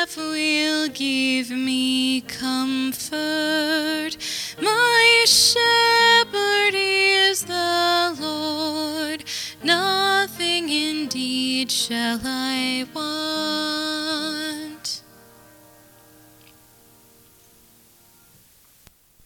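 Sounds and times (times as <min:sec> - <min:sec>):
psalm chant: 0:00.0 - 0:15.2.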